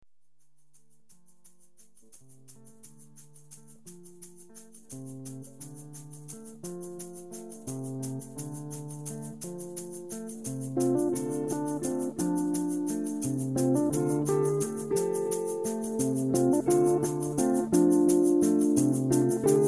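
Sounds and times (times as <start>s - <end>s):
blues music: 3.9s - 19.6s.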